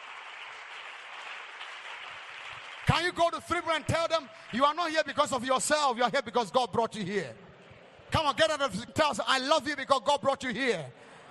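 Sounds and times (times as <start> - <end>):
audience clapping: 0.0 - 5.9
speech: 2.9 - 7.4, 8.1 - 11.0.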